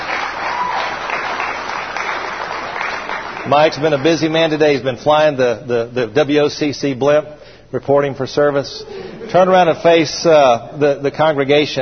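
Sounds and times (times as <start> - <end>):
audience applause, hand clapping: 0.0 - 4.4
speech: 3.5 - 11.8.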